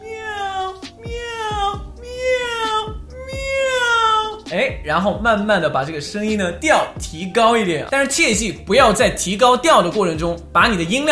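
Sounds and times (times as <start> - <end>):
person imitating cat meows: 0.0 - 4.8
speech: 4.5 - 11.0.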